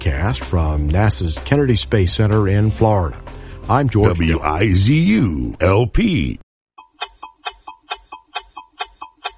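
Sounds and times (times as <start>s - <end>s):
speech: 0.1s - 6.4s
clock ticking: 6.8s - 9.3s.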